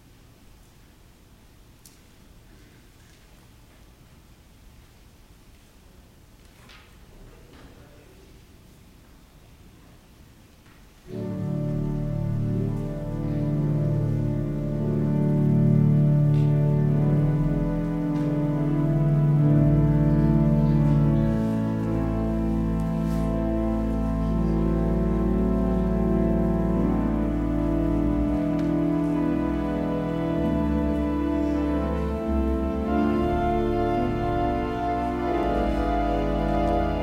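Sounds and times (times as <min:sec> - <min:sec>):
organ music: 0:11.1 - 0:37.0.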